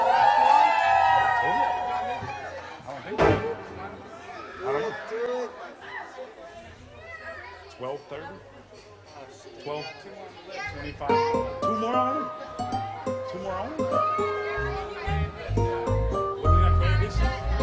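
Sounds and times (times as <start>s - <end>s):
crowd of women cheering at a live show: 0.0s - 2.3s
crowd chatter and scattered yells: 0.0s - 17.6s.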